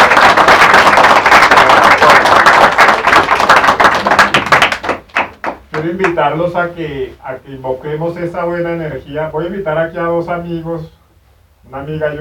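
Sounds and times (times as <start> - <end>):
audience applause: 0.0 - 5.6
speech: 5.9 - 11.0, 11.7 - 12.1.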